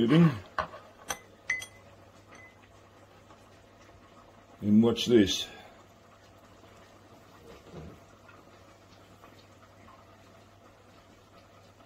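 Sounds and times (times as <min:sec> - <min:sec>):
speech: 0:00.0 - 0:00.5, 0:04.6 - 0:05.6
light clinks against a glass as pills are stirred into a solution: 0:01.1 - 0:02.6.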